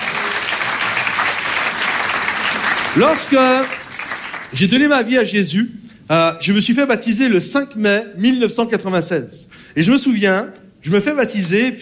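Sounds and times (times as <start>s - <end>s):
audience applauding loudly: 0.0s - 4.8s
speech: 3.0s - 3.8s, 4.5s - 11.8s.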